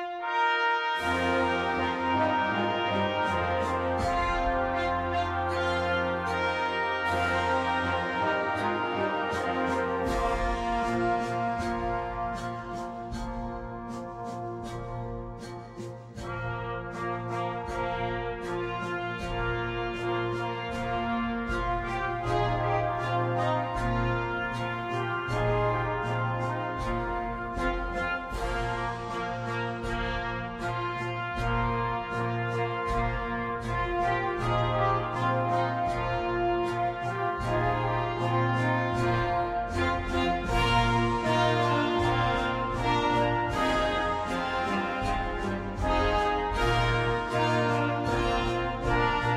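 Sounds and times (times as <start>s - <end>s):
full band arrangement: 0.2s - 49.3s.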